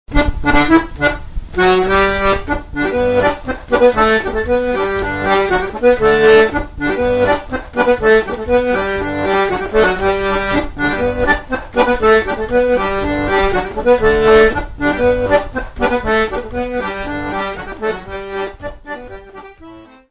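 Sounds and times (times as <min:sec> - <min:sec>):
French polka music: 0:00.1 - 0:20.1.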